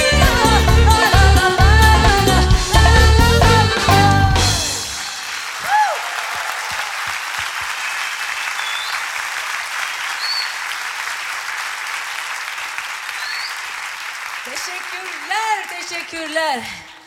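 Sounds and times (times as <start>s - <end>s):
crowd applause: 0.1s - 16.9s.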